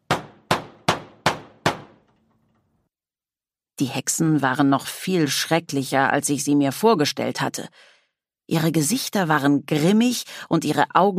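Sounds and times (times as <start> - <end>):
knocking on a castle door: 0.0 - 2.2
speech: 3.8 - 7.9, 8.5 - 11.1.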